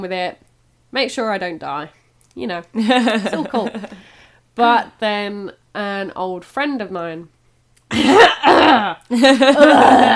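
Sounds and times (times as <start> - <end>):
speech: 0.0 - 4.0, 4.6 - 10.1
person retching: 7.9 - 10.1.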